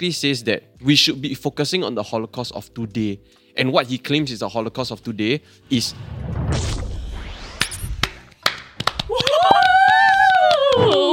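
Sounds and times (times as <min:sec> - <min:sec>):
speech: 0:00.0 - 0:06.8
hand claps: 0:08.0 - 0:11.1.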